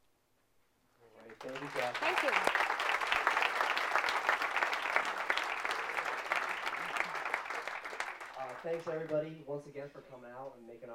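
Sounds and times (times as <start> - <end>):
audience applause: 1.2 - 9.2
speech: 1.4 - 2.7, 8.6 - 10.9.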